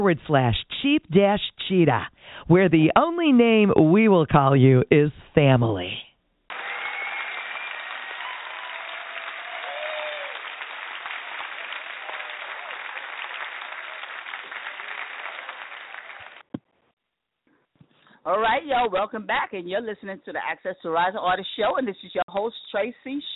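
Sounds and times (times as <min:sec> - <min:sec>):
speech: 0:00.0 - 0:06.1, 0:18.3 - 0:23.3
audience applause: 0:06.5 - 0:16.5.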